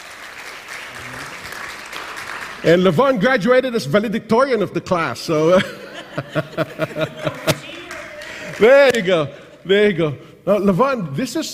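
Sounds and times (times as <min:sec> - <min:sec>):
audience applause welcoming a speaker to the stage: 0:00.0 - 0:03.0, 0:06.6 - 0:09.3
speech: 0:02.6 - 0:07.7, 0:08.6 - 0:11.5
laughter: 0:05.4 - 0:10.1.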